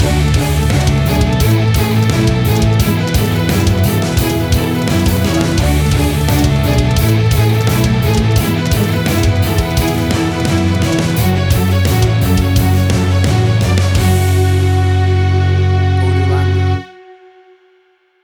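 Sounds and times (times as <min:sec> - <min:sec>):
big action gothic metal music: 0:00.0 - 0:17.6.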